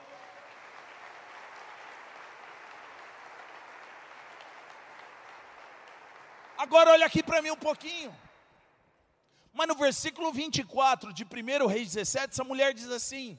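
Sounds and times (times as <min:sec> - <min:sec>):
audience applauding: 0:00.0 - 0:07.5
speech: 0:06.6 - 0:08.2, 0:09.6 - 0:13.3.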